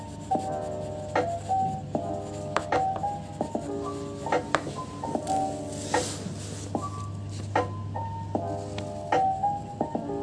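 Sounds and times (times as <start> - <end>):
sharp scratching scribbles: 0.0 - 7.6
background music with short plucked notes: 0.0 - 10.2.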